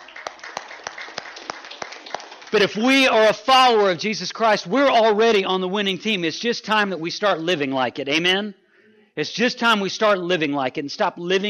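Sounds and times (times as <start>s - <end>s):
audience clapping: 0.0s - 4.1s
speech: 2.5s - 8.6s, 9.2s - 11.4s.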